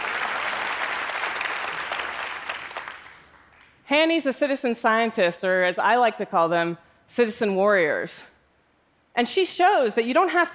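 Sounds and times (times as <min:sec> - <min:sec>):
audience applause: 0:00.0 - 0:03.7
speech: 0:03.9 - 0:08.3, 0:09.2 - 0:10.5.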